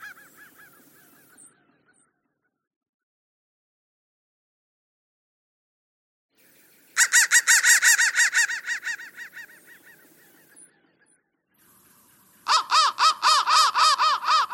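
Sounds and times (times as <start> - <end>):
crow cawing: 0.0 - 1.4, 7.0 - 10.2, 12.4 - 14.5.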